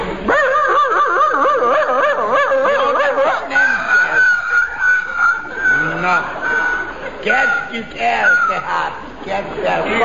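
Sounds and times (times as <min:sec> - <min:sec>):
laughter: 0:00.0 - 0:10.0
person imitating a dog howling ominously: 0:00.3 - 0:08.7.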